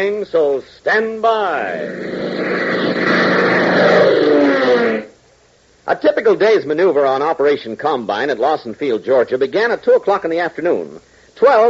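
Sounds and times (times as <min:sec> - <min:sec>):
speech: 0:00.0 - 0:02.8, 0:05.9 - 0:11.6
propeller airplane engines droning: 0:01.8 - 0:05.1.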